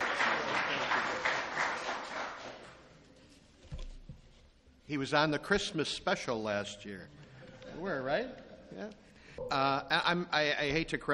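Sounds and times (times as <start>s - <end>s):
crowd applause: 0.0s - 2.8s
speech: 4.9s - 7.2s, 7.8s - 11.1s.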